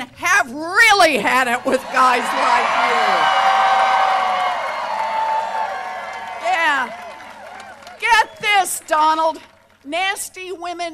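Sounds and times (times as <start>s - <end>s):
speech: 0.5s - 3.4s, 8.2s - 10.9s
small crowd cheering and whooping: 1.3s - 9.6s
sustained high-pitched shout: 1.6s - 7.0s.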